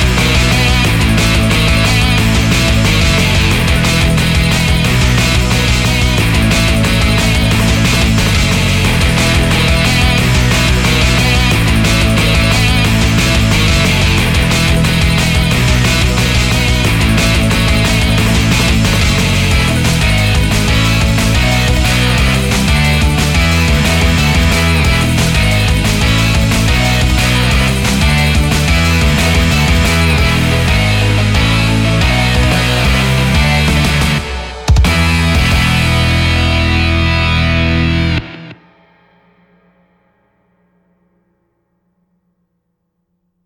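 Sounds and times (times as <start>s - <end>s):
neo-rock background music: 0.0s - 39.7s.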